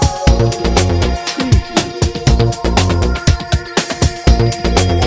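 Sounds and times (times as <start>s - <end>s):
adventure beat loop: 0.1s - 4.9s.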